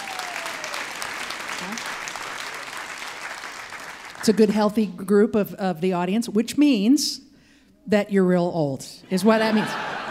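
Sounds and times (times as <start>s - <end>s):
audience applause: 0.0s - 4.3s
speech: 1.6s - 2.0s, 4.2s - 10.0s
laughter: 9.2s - 10.1s.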